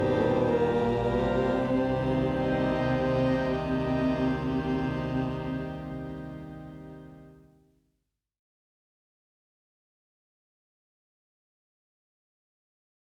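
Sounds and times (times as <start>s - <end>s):
person chanting om: 0.0s - 6.8s.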